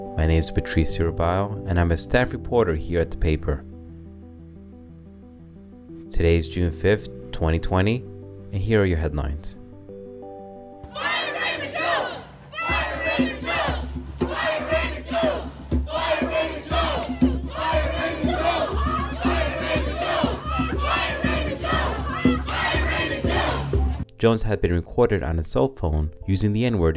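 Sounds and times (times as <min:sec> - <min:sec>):
speech: 0:00.0 - 0:03.7, 0:06.1 - 0:09.6, 0:24.2 - 0:26.9
rally crowd chanting: 0:10.9 - 0:24.0.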